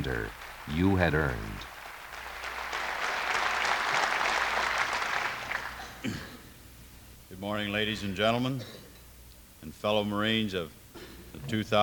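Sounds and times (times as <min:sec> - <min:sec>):
speech: 0:00.0 - 0:01.7, 0:07.4 - 0:08.8, 0:09.6 - 0:10.8, 0:11.4 - 0:11.8
graduation ceremony applause: 0:00.0 - 0:06.0.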